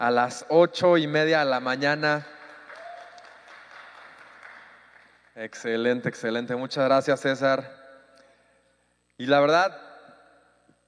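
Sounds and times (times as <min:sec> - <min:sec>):
speech: 0:00.0 - 0:02.4, 0:05.4 - 0:07.8, 0:09.2 - 0:09.9
audience applause: 0:02.4 - 0:05.4.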